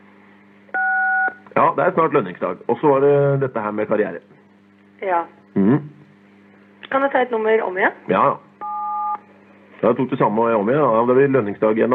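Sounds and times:
faint low hum: 0.0s - 11.9s
telephone keypad tone: 0.8s - 1.4s, 8.6s - 9.2s
speech: 1.8s - 4.4s, 5.0s - 6.0s, 6.9s - 8.5s, 9.8s - 11.9s.

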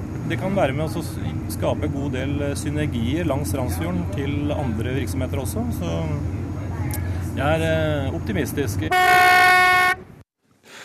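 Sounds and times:
speech: 0.3s - 9.4s
tourist boat whistle blast: 8.9s - 10.1s.

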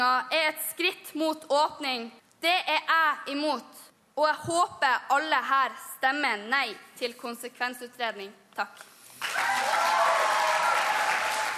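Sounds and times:
speech: 0.0s - 9.8s
applause for a performer: 9.2s - 11.5s.

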